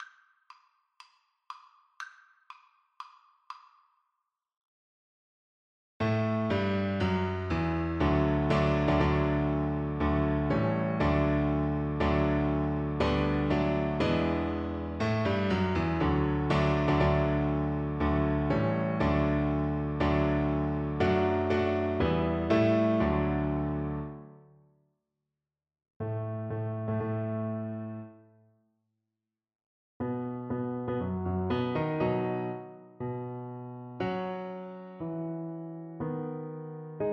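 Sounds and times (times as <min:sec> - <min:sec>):
piano duet: 0:06.0 - 0:24.5, 0:26.0 - 0:28.3, 0:30.0 - 0:37.1.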